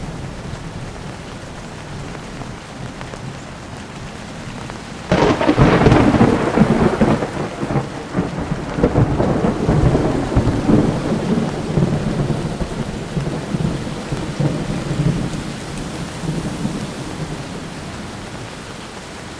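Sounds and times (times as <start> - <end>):
thunderstorm: 5.1 - 18.8.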